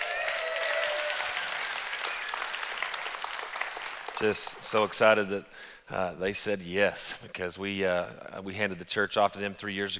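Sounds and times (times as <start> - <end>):
audience applause: 0.0 - 5.0
speech: 4.2 - 9.9.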